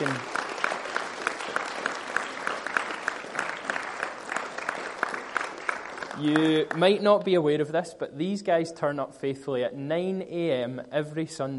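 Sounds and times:
audience applause: 0.0 - 7.0
speech: 6.2 - 11.5.

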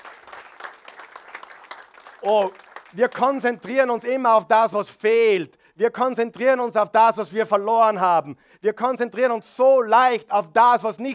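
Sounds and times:
audience applause: 0.0 - 3.4
speech: 2.2 - 11.1.

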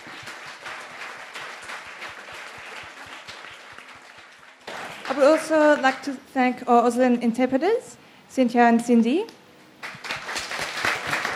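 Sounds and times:
audience applause: 0.0 - 6.0, 9.8 - 11.3
speech: 5.1 - 9.4.

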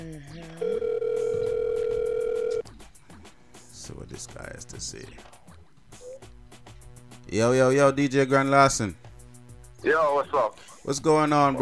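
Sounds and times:
outgoing phone call ringback tone: 0.6 - 2.6
speech: 4.1 - 5.4, 7.3 - 9.1, 9.8 - 11.5.

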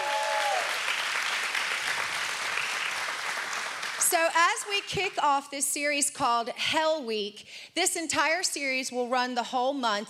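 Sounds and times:
large crowd clapping for online live streamers: 0.0 - 4.9
speech: 4.1 - 10.0.

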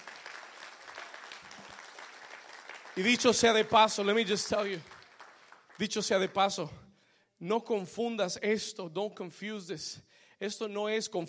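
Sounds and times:
audience applause: 0.0 - 6.3
speech: 3.0 - 4.9, 5.8 - 6.8, 7.4 - 11.2.

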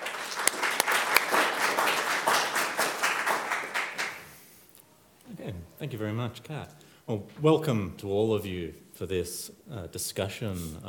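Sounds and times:
audience applause welcoming a discussion panel: 0.0 - 4.4
speech: 5.8 - 10.8.

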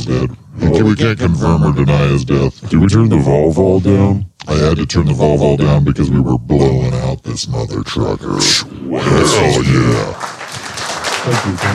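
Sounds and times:
speech: 0.0 - 10.4, 11.2 - 11.7
applause: 9.6 - 11.7.

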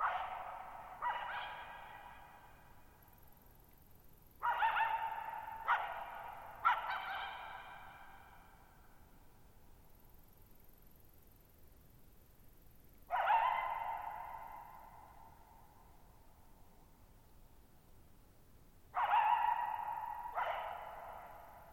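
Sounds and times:
coyote barking and yipping with long echo: 0.0 - 2.6, 4.4 - 8.3, 13.1 - 15.2, 19.0 - 21.7
faint high hiss: 0.0 - 21.7.

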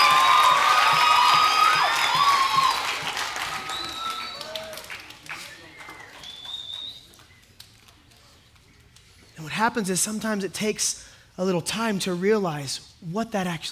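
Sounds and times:
audience applause: 0.0 - 7.4
whoops and high whistles: 0.0 - 7.4
speech: 9.6 - 13.6.

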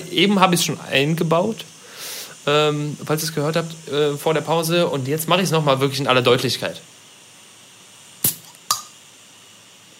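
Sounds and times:
speech: 0.1 - 6.9
flip-top beer bottle snapped open: 8.2 - 9.0.

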